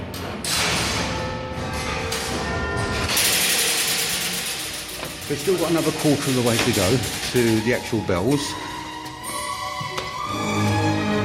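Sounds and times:
clock tower wheels and ironwork turning: 0:00.1 - 0:08.5
metallic whine: 0:00.6 - 0:11.2
speech: 0:05.3 - 0:08.7.

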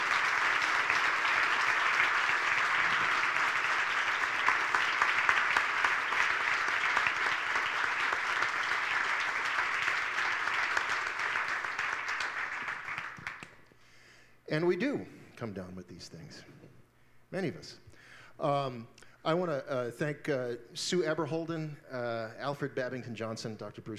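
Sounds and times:
audience applause: 0:00.0 - 0:13.6
speech: 0:14.6 - 0:16.6, 0:17.3 - 0:23.9.

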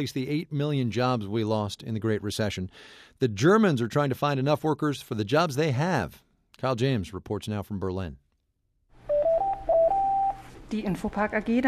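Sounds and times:
speech: 0:00.0 - 0:08.2, 0:10.7 - 0:11.6
telephone ringing with electronic tones: 0:09.1 - 0:10.5.

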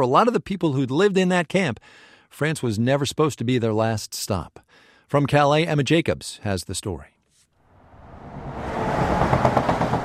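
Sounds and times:
speech: 0:00.0 - 0:07.1
trucks passing on highway under bridge: 0:07.6 - 0:10.0.

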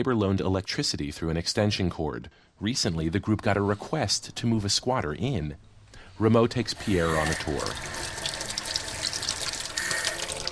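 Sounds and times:
speech: 0:00.0 - 0:08.2
water running from a tap in a vacant house: 0:06.7 - 0:10.5.

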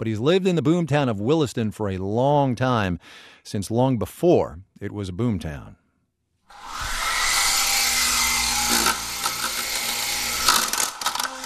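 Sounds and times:
speech: 0:00.0 - 0:05.8
remote-controlled model helicopter buzzing: 0:06.5 - 0:11.4.

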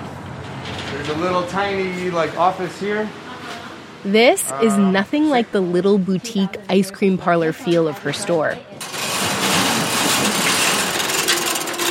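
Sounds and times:
metal garage door opening: 0:00.4 - 0:02.2, 0:08.8 - 0:11.8
speech: 0:01.0 - 0:03.2, 0:04.0 - 0:09.0.

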